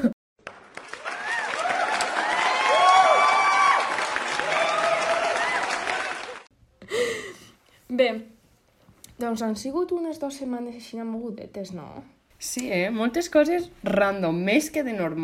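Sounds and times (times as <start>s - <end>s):
applause sound effect: 0.4s - 6.5s
speech: 9.3s - 15.2s.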